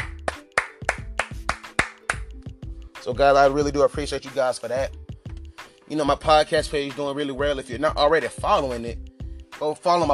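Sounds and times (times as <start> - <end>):
hand clapping: 0.0 - 2.5
speech: 3.1 - 5.0, 5.9 - 9.0, 9.6 - 10.1.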